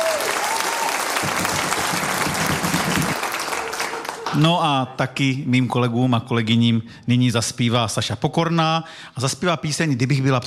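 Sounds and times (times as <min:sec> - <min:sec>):
crowd applauding: 0:00.0 - 0:04.8
speech: 0:04.3 - 0:10.4.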